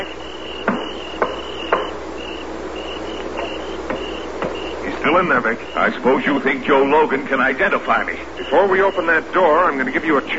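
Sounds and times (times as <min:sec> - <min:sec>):
knocking on the side of a wagon: 0:00.6 - 0:02.0, 0:03.4 - 0:04.7
speech: 0:05.1 - 0:10.3.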